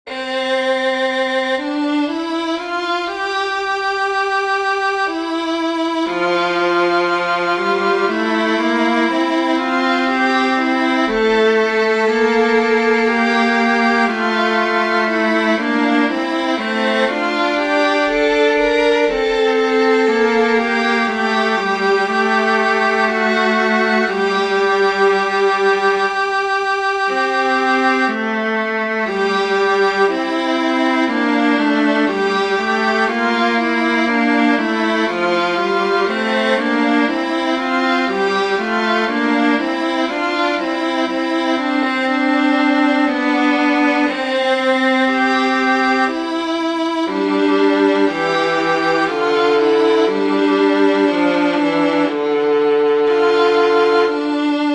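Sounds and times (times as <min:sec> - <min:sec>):
violin: 0:00.0 - 0:54.7.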